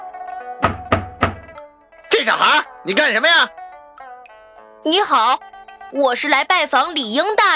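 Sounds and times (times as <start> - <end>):
knocking on a door: 0.6 - 1.6
speech: 2.4 - 3.6, 4.8 - 7.5.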